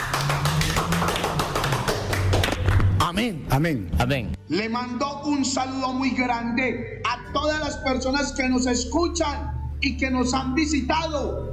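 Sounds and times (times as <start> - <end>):
audience clapping in church: 0.0 - 3.3
speech: 3.2 - 11.5.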